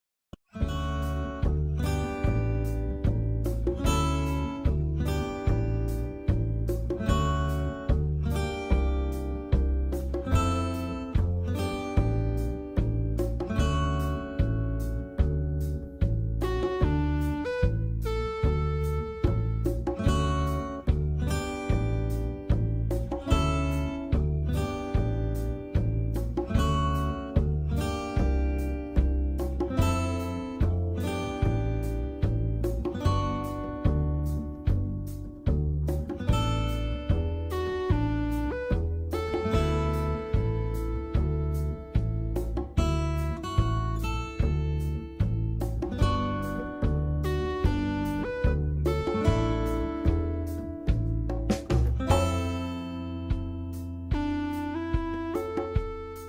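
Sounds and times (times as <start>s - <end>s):
music: 0.4s - 56.2s.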